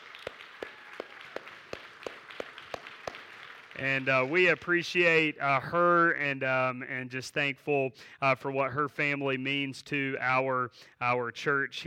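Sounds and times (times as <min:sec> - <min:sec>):
group clapping in a steady, even rhythm: 0:00.0 - 0:05.0
speech: 0:03.8 - 0:11.8.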